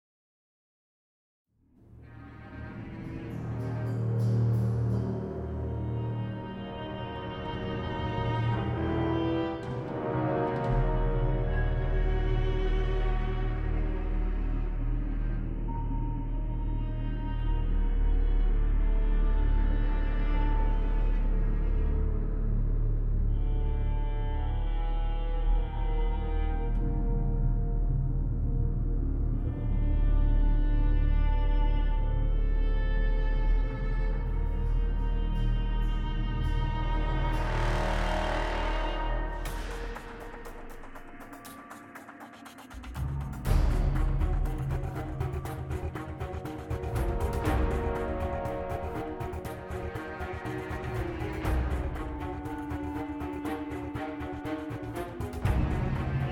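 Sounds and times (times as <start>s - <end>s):
music: 1.5s - 56.3s.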